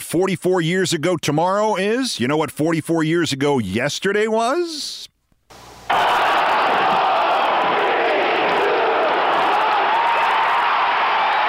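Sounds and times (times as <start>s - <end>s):
speech: 0.1s - 5.1s
huge arena crowd cheering and whooping: 5.9s - 11.4s.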